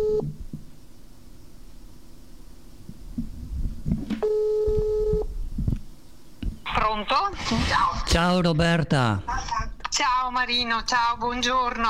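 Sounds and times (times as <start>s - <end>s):
telephone ringback tone after dialing: 0.0s - 0.3s, 4.2s - 5.3s
low rumble: 0.0s - 11.8s
speech: 7.0s - 11.8s.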